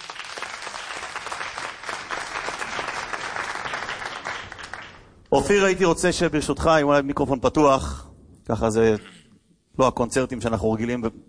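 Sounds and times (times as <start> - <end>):
audience applause: 0.0 - 5.2
speech: 5.3 - 9.1, 9.8 - 11.2.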